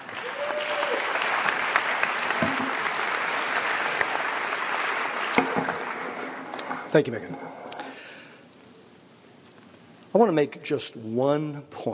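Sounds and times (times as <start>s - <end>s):
audience applause welcoming a speaker to the stage: 0.0s - 6.6s
speech: 6.9s - 7.5s, 10.1s - 11.9s.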